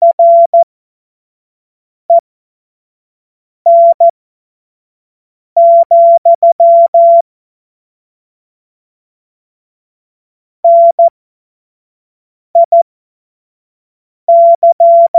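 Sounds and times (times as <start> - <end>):
Morse code course tones: 0.0 - 0.6, 3.7 - 4.1, 5.6 - 7.2, 12.6 - 12.8, 14.3 - 15.1.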